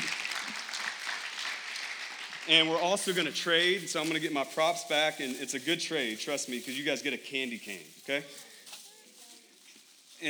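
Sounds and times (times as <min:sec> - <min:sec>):
crowd applauding: 0:00.0 - 0:03.0
speech: 0:02.5 - 0:08.5.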